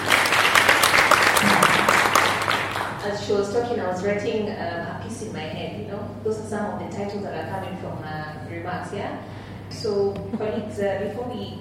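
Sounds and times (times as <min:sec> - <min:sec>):
audience applause after a presentation: 0:00.0 - 0:03.0
speech: 0:03.3 - 0:11.5.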